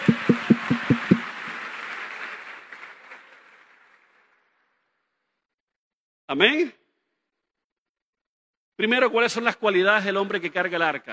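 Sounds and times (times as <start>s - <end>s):
men in audience applauding: 0.0s - 4.4s
speech: 6.3s - 6.8s, 8.8s - 11.1s.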